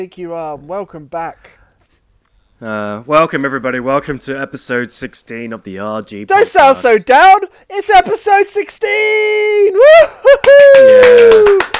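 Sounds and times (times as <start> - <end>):
speech: 0.0 - 1.6, 2.6 - 11.7
person cheering: 8.8 - 11.7
hand clapping: 10.3 - 11.7.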